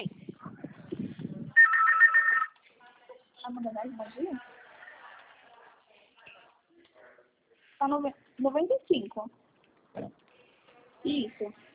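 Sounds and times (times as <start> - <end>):
phone ringtone: 1.6 - 2.6
speech: 3.6 - 4.5, 7.8 - 9.4, 11.0 - 11.7.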